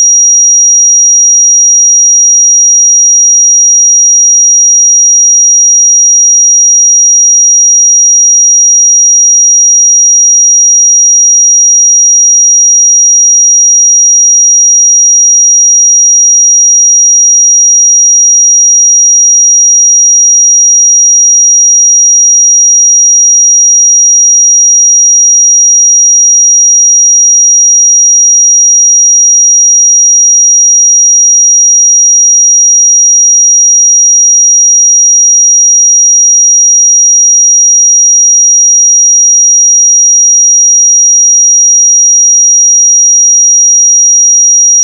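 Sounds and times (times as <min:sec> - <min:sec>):
5729 Hz pure sine tone: 0:00.0 - 0:44.8.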